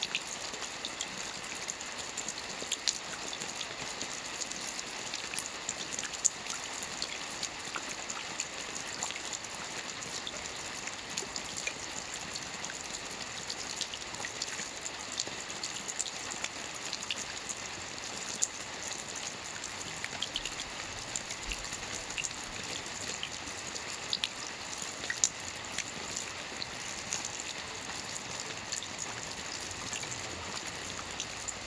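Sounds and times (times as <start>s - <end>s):
rain water drops: 0.0s - 31.6s.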